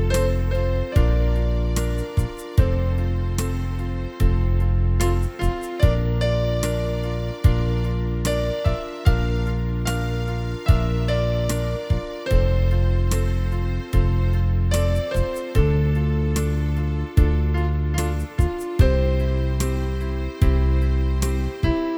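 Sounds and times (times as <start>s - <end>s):
organ: 0.0s - 21.9s.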